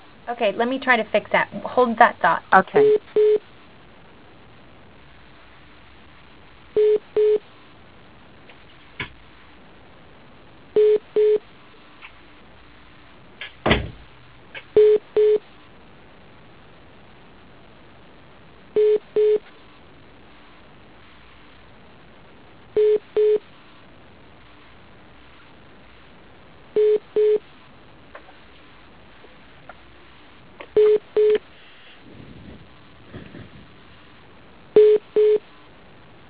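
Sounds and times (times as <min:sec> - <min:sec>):
speech: 0:00.3 - 0:03.3
beeping: 0:02.7 - 0:03.4, 0:06.8 - 0:07.4, 0:10.8 - 0:11.4, 0:14.8 - 0:15.4, 0:18.8 - 0:19.4, 0:22.8 - 0:23.4, 0:26.8 - 0:27.4, 0:30.7 - 0:31.4, 0:34.8 - 0:35.4.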